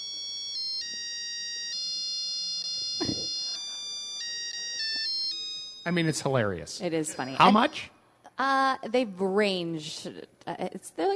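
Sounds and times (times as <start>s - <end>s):
musical egg timer jingle signalling hard-boiled egg: 0.0s - 6.3s
speech: 5.8s - 11.1s.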